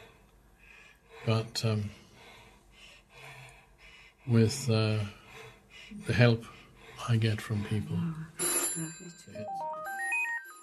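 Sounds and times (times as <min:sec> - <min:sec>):
speech: 0:01.2 - 0:02.0, 0:04.2 - 0:05.2, 0:05.9 - 0:09.7
telephone ringtone for a call from a son: 0:08.4 - 0:10.6.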